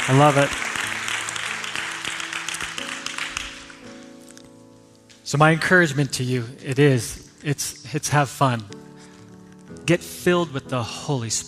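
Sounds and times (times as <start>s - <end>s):
speech: 0.0s - 0.6s, 5.3s - 8.8s, 9.9s - 11.4s
audience applause: 0.0s - 3.8s.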